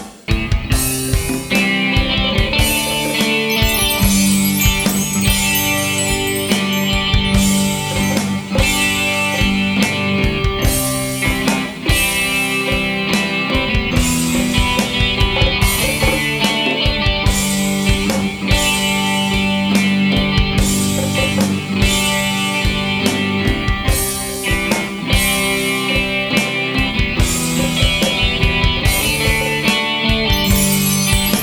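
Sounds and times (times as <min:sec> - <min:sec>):
ambient electric guitar music: 0:00.3 - 0:31.4.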